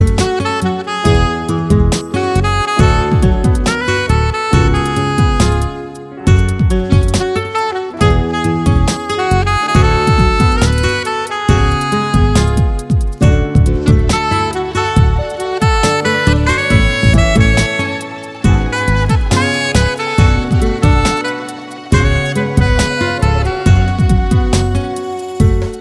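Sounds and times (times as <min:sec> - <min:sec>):
saxophone: 0:00.0 - 0:25.7.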